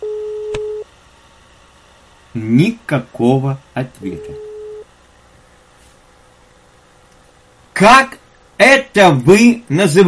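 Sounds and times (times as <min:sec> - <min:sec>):
telephone busy signal tone: 0:00.0 - 0:00.9, 0:04.2 - 0:04.9
speech: 0:02.4 - 0:04.4, 0:07.8 - 0:10.0.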